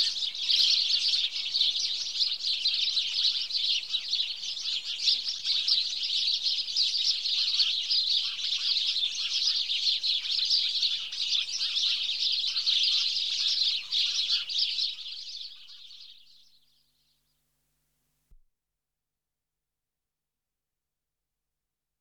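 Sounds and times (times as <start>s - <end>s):
chorus of many house sparrows Passer domesticus chirping: 0.0s - 17.4s.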